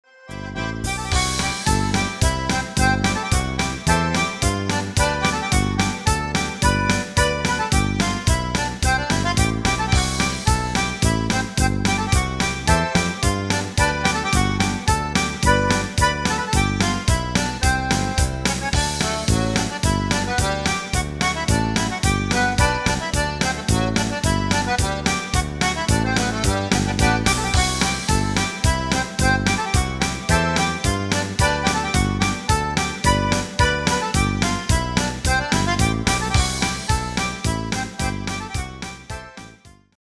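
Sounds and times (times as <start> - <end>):
polka music: 0.0 - 39.9.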